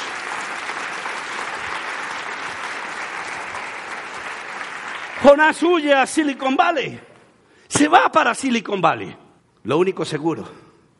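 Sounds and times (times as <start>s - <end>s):
audience applause: 0.0s - 5.8s
speech: 5.2s - 7.1s, 7.7s - 10.6s.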